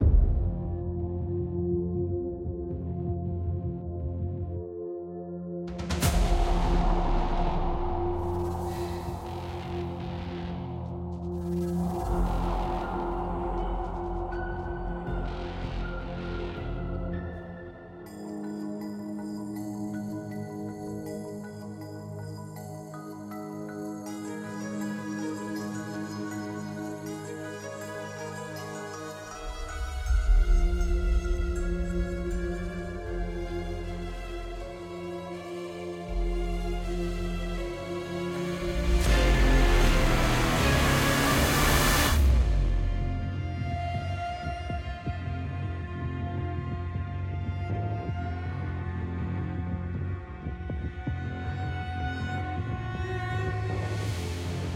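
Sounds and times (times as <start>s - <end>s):
theme music: 0.0s - 54.7s.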